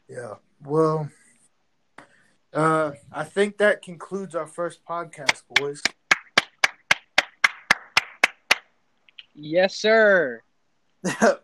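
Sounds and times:
speech: 0.1 - 1.2, 2.5 - 6.0, 9.4 - 11.4
sharp hand claps: 5.1 - 9.2.

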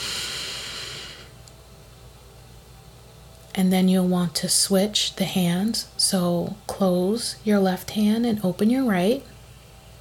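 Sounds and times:
deep breath in through the left nostril during a Reiki meditation: 0.0 - 1.4
speech: 3.6 - 9.3.

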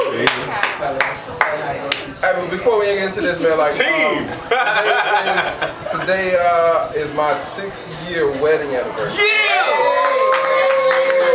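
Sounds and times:
murmur of voices: 0.0 - 11.3
handclaps: 0.2 - 2.1, 10.0 - 11.3
speech: 2.4 - 10.1
laughter: 4.2 - 6.4.

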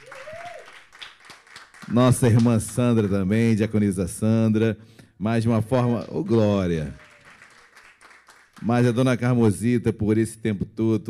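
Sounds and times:
audience applause: 0.0 - 3.2, 6.0 - 9.3
speech: 1.9 - 7.0, 8.6 - 11.0.

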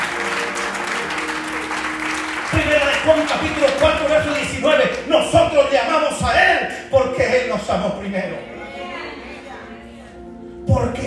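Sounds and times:
audience applauding: 0.0 - 5.1
speech: 3.0 - 8.5.

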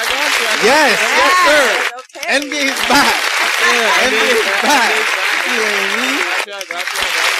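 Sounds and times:
crowd applause: 0.0 - 7.3
laughter: 0.0 - 7.3
speech: 0.6 - 7.3.

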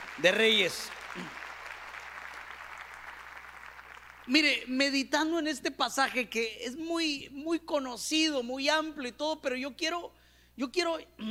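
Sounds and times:
audience applause: 0.0 - 4.4
speech: 0.2 - 1.4, 4.3 - 11.2.

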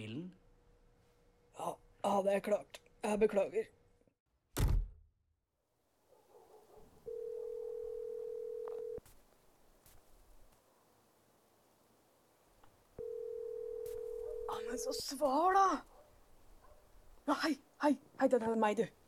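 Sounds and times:
speech: 0.0 - 0.4, 1.6 - 3.8, 14.7 - 15.9, 17.3 - 19.0
telephone ringing tone during outgoing call: 7.1 - 9.0, 13.0 - 15.0.

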